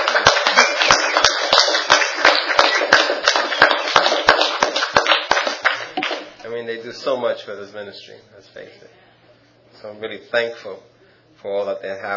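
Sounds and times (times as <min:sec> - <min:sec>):
crowd clapping steadily: 0:00.0 - 0:06.4
speech: 0:07.0 - 0:09.1, 0:09.7 - 0:12.1.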